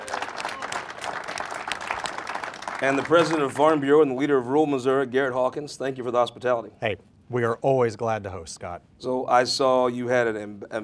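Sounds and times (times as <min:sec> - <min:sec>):
audience round of applause: 0:00.0 - 0:03.8
speech: 0:02.8 - 0:10.8.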